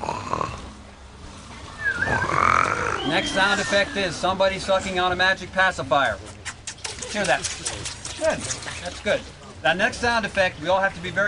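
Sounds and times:
audience imitating snoring: 0:00.0 - 0:00.7, 0:02.0 - 0:03.7
speech: 0:03.1 - 0:06.3, 0:07.1 - 0:11.2.

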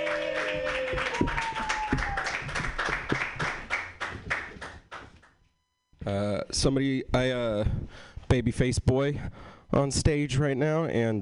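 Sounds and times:
audience clapping for a comedian at a comedy show: 0:00.0 - 0:05.4
speech: 0:06.5 - 0:11.2.

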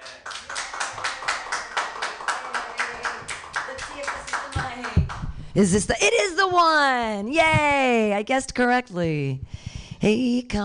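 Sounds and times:
rhythmic group clapping: 0:00.0 - 0:05.5
speech: 0:05.6 - 0:10.6.

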